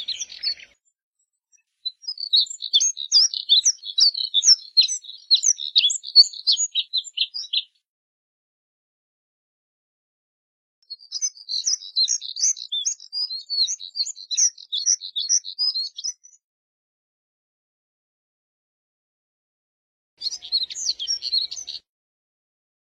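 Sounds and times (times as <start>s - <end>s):
Moussier's redstart twittering warble: 0.0s - 0.8s, 1.9s - 7.7s, 10.9s - 16.4s, 20.2s - 21.8s.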